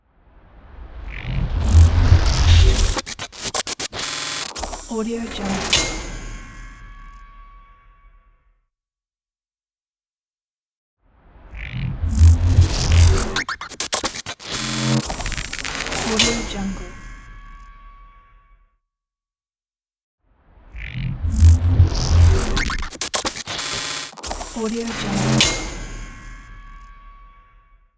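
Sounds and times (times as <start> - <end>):
rapid technological transition sound: 0.3 - 6.5, 11.5 - 17.2, 20.8 - 26.3.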